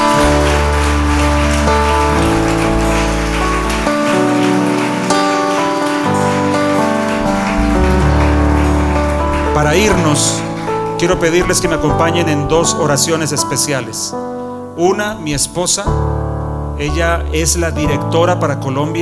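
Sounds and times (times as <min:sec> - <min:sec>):
audience applause: 0:00.0 - 0:11.7
sustained keyboard-like chords: 0:00.0 - 0:19.0
speech: 0:09.7 - 0:10.4, 0:11.0 - 0:16.1, 0:16.8 - 0:19.0.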